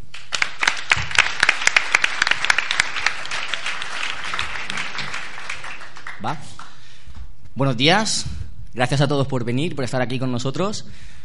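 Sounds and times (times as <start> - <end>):
audience applause: 0.2 - 6.8
speech: 6.2 - 6.6, 7.6 - 11.2.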